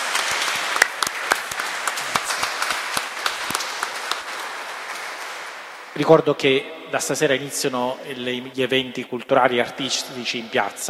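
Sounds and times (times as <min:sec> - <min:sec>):
audience applause: 0:00.0 - 0:06.2
speech: 0:06.0 - 0:10.8.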